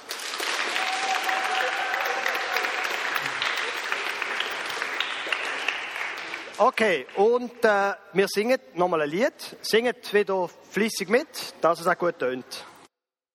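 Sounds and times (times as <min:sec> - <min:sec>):
applause: 0:00.0 - 0:07.4
speech: 0:06.6 - 0:12.7.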